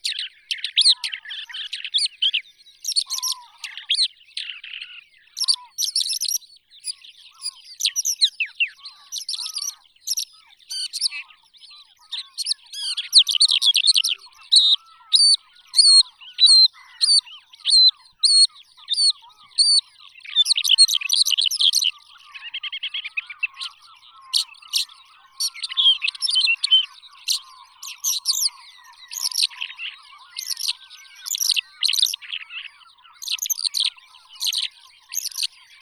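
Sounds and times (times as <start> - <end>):
Calandrella cheleensis lark singing: 0.0 - 35.8.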